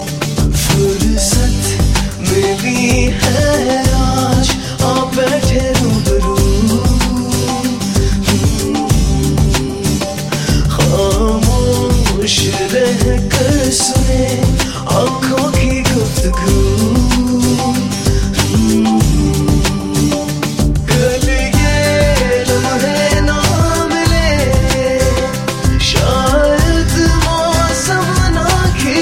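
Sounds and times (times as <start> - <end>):
sad song: 0.0 - 29.0.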